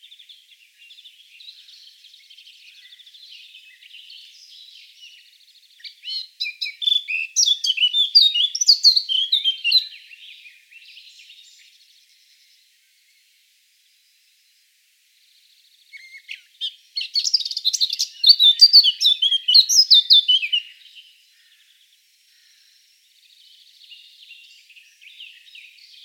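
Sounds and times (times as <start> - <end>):
Eurasian blackcap singing: 0.0 - 11.6, 15.9 - 21.1.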